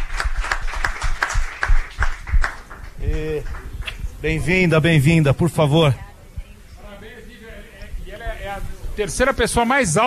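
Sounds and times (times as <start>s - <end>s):
hand clapping: 0.0s - 4.1s
speech: 4.2s - 6.0s, 9.0s - 10.0s.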